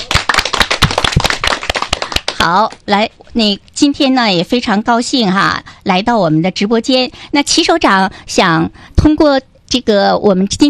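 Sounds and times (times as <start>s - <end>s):
small audience clapping during a live show: 0.0s - 2.8s
speech: 2.4s - 10.6s.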